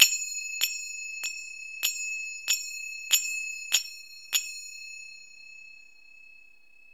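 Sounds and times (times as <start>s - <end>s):
cymbal rhythm: 0.0s - 4.6s.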